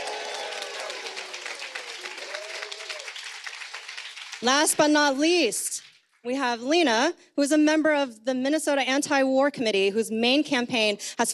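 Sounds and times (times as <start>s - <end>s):
audience applause: 0.0s - 4.7s
speech: 4.4s - 11.3s.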